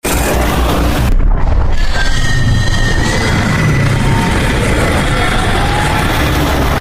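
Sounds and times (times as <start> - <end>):
mind flayer monster sounds: 0.0 - 6.7.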